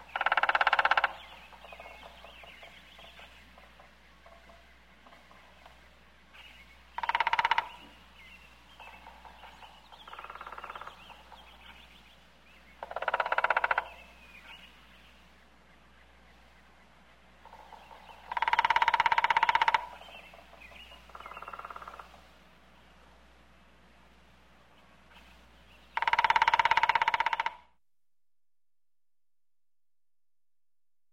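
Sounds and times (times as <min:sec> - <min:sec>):
woodpecker drumming: 0:00.0 - 0:12.1, 0:12.7 - 0:14.7, 0:17.1 - 0:22.3, 0:25.1 - 0:27.8.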